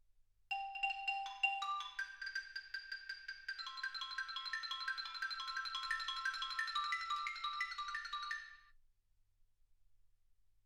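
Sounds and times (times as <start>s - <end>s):
xylophone: 0.5s - 8.7s.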